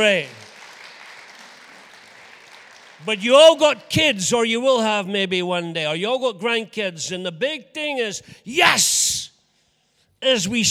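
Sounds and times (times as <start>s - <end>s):
speech: 0.0s - 0.4s, 3.0s - 9.3s, 10.2s - 10.6s
audience applause: 0.0s - 3.2s.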